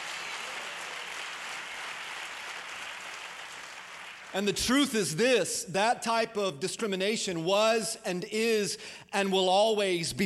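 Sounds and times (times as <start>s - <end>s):
crowd clapping: 0.0s - 4.6s
speech: 4.3s - 10.2s.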